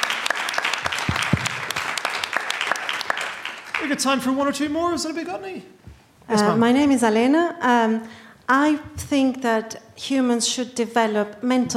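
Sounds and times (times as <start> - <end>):
audience round of applause: 0.0 - 4.6
speech: 3.8 - 11.7.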